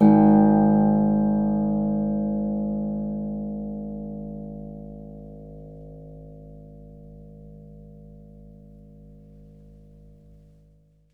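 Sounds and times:
harp: 0:00.0 - 0:04.8.

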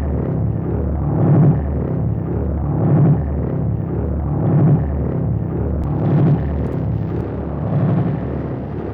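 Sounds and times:
crude tape loop with tape delay: 0:00.1 - 0:08.9.

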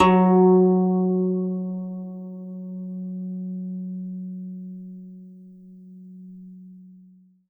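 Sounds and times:
zheng harp F#2 note: 0:00.0 - 0:04.0.

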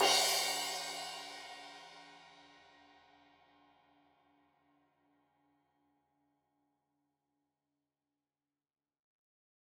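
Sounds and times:
15 inch crash cymbal edge hit: 0:00.0 - 0:02.1.

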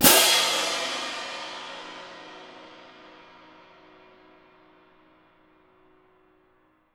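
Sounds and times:
cymbal: 0:00.0 - 0:05.4.

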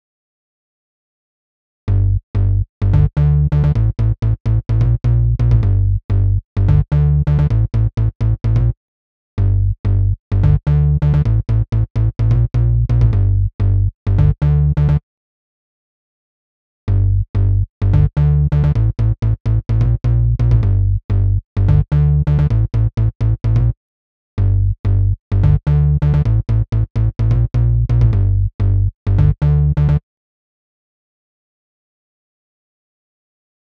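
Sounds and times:
bass line in G at 128 BPM: 0:01.9 - 0:08.8, 0:09.4 - 0:15.0, 0:16.9 - 0:23.8, 0:24.4 - 0:30.0.

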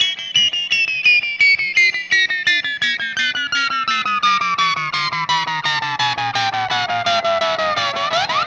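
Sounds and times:
static guitar effect: 0:00.0 - 0:08.4.

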